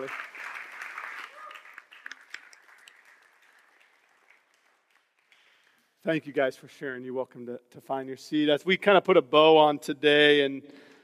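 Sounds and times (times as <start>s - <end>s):
applause in Grove Church in Snohomish: 0.0s - 6.1s
speech: 6.0s - 10.9s.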